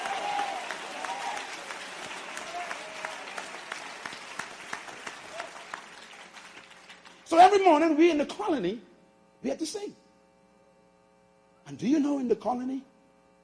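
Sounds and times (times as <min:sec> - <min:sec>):
audience clapping hands: 0:00.0 - 0:07.6
speech: 0:07.3 - 0:10.0, 0:11.7 - 0:12.9.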